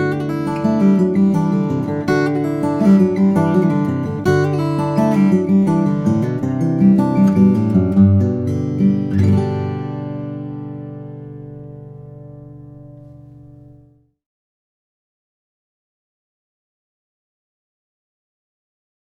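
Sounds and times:
small jumbo flattop steel string guitar: 0.0s - 14.0s.

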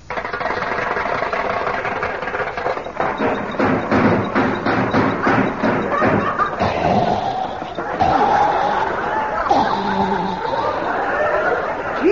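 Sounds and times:
car engine cranked, coughing and sputtering: 0.0s - 9.2s
laughter: 5.0s - 12.1s.

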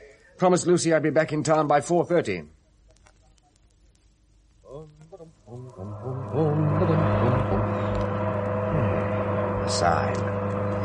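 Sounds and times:
speech: 0.4s - 2.6s, 9.8s - 10.3s
car engine revving and running while driving: 5.9s - 10.8s.

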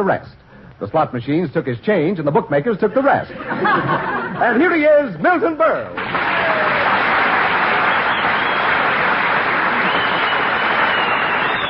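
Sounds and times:
speech: 0.0s - 7.0s
laughter: 2.9s - 4.8s
audience whistling: 6.0s - 11.6s.

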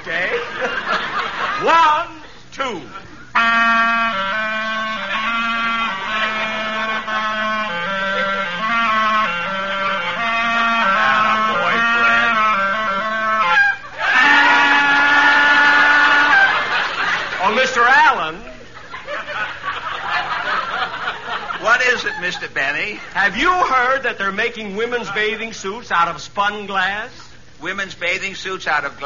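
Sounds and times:
laughter: 0.0s - 3.4s, 4.6s - 24.0s
speech: 1.6s - 3.1s, 22.0s - 29.0s
clarinet playing: 3.2s - 17.0s.

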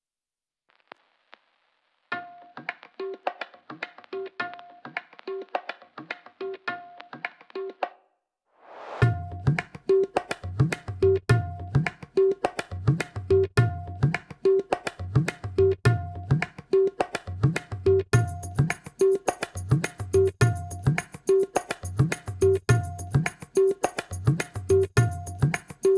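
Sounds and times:
beats: 9.0s - 25.9s.

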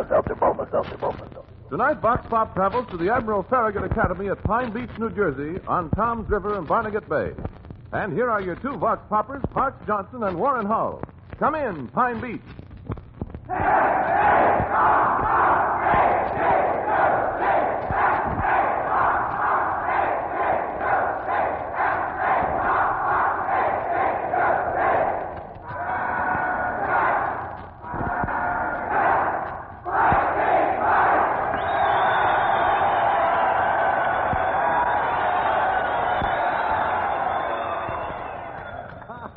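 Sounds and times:
speech: 0.0s - 12.6s, 13.5s - 14.2s
large group of cadets cheering and yelling: 13.5s - 39.3s
rising whistle-like tone: 31.5s - 33.5s.

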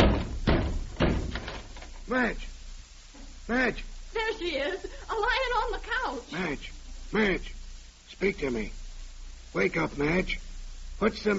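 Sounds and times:
door being broken in: 0.0s - 2.0s
speech: 2.1s - 2.5s, 3.5s - 7.6s, 8.2s - 8.8s, 9.5s - 10.4s, 11.0s - 11.3s.

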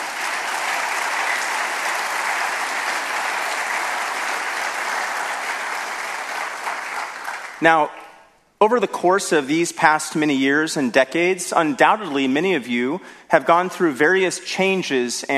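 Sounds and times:
audience applause: 0.0s - 7.6s
speech: 7.6s - 8.0s, 8.6s - 15.3s.

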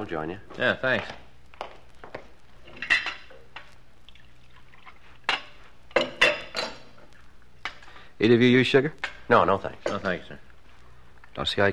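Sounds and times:
speech: 0.0s - 1.2s, 8.2s - 10.5s, 11.4s - 11.7s
cups and dishes clinking as coffee is served: 2.7s - 3.7s, 4.8s - 7.0s, 9.0s - 10.3s.

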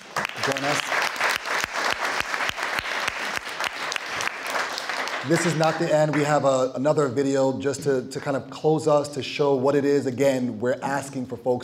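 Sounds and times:
audience round of applause: 0.0s - 6.4s
speech: 0.5s - 0.9s, 5.2s - 11.6s.

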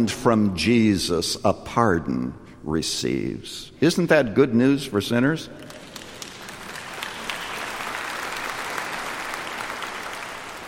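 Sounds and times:
speech: 0.0s - 5.7s
audience applauding: 5.6s - 10.6s.

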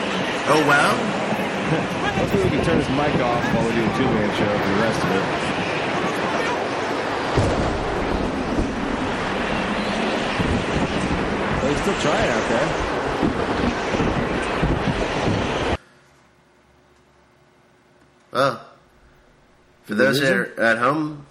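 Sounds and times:
storm wind: 0.0s - 15.8s
speech: 0.5s - 5.7s, 11.7s - 13.8s, 19.9s - 21.2s.

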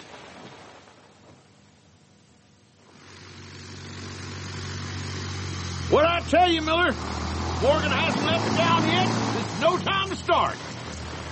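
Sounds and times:
small plane engine coming in to land: 2.8s - 11.3s
speech: 5.9s - 10.7s.

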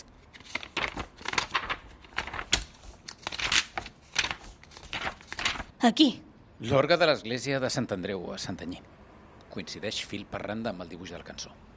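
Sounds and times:
pages of a large encyclopedic book volume rustling: 0.0s - 5.7s
speech: 5.8s - 8.9s, 9.5s - 11.7s.

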